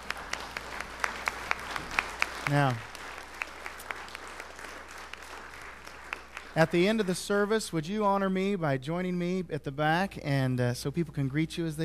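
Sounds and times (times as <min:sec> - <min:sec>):
audience applauding with hand claps: 0:00.0 - 0:07.6
speech: 0:02.5 - 0:02.9, 0:06.6 - 0:11.8.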